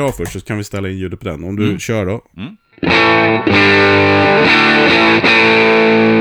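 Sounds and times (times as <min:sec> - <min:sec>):
speech: 0:00.0 - 0:06.1
electric guitar through a distortion pedal strumming chords: 0:02.8 - 0:06.1.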